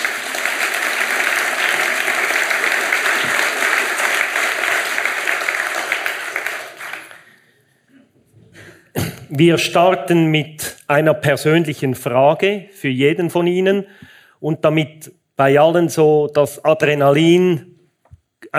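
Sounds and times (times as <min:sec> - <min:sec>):
audience applause: 0:00.0 - 0:07.5
speech: 0:09.3 - 0:17.7.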